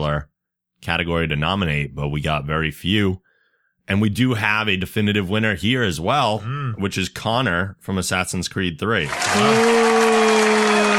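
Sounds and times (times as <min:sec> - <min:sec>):
speech: 0:00.1 - 0:03.2, 0:03.9 - 0:10.2
audience cheering: 0:09.0 - 0:10.9
staff booing: 0:09.1 - 0:10.9.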